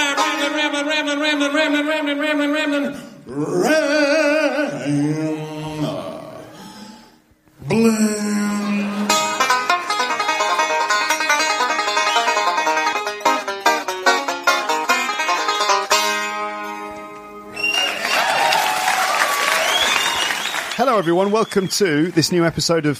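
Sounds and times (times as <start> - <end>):
live comedy song with plucked notes: 0.0 - 6.6, 7.6 - 21.1
speech: 0.8 - 6.1, 7.7 - 8.4, 21.0 - 22.9
audience applause: 17.6 - 21.8.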